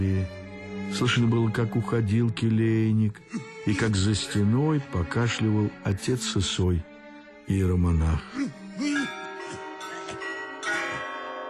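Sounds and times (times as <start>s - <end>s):
speech: 0.0s - 6.9s, 7.5s - 8.9s
monastery clock striking the quarter hour: 8.9s - 11.4s.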